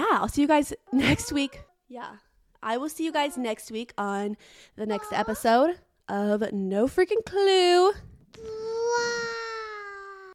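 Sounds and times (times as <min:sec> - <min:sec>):
speech: 0:00.2 - 0:09.0
baby babbling: 0:08.4 - 0:10.3.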